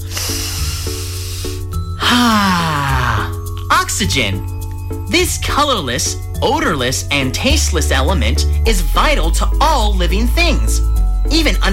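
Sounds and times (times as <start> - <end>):
big deep breath drawn in: 0.0 - 3.3
music: 0.0 - 11.7
speech: 2.1 - 2.8, 3.9 - 4.5, 5.1 - 11.7.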